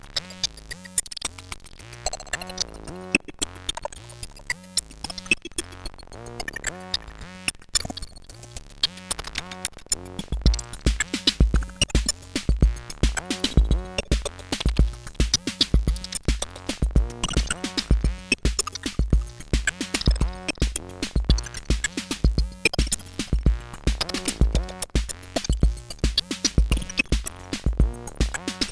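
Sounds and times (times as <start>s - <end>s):
modded drum machine bass drum: 10.1s - 28.6s.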